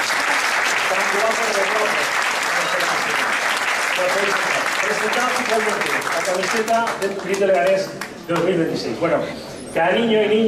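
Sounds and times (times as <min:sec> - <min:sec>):
audience applause: 0:00.0 - 0:08.2
speech: 0:00.9 - 0:03.3, 0:04.0 - 0:10.4.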